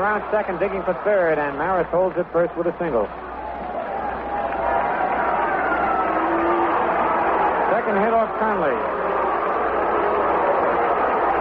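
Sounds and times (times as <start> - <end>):
speech: 0.0 - 3.3, 7.9 - 9.0
baseball stadium crowd noise as Mickey Mantle comes up to bat: 0.0 - 11.3.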